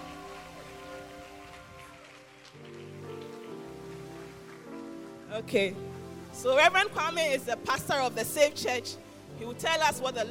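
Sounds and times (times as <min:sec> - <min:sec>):
audience clapping: 0:00.0 - 0:05.3
speech: 0:05.4 - 0:10.2.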